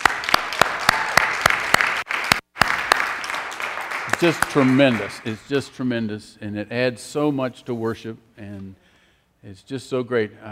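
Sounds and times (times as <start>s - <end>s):
audience round of applause: 0.0s - 5.4s
speech: 4.2s - 8.8s, 9.4s - 10.5s.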